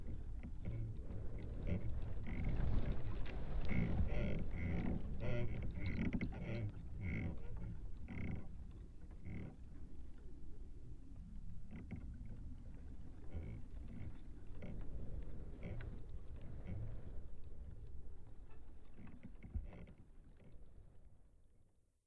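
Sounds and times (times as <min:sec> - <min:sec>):
creaking tree vibrations: 0:00.0 - 0:09.9, 0:13.1 - 0:20.7.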